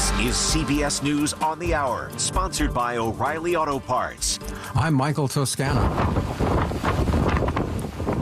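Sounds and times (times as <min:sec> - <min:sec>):
speech: 0:00.2 - 0:07.1
hurricane winds roaring ashore buffeting the microphone: 0:05.7 - 0:08.2.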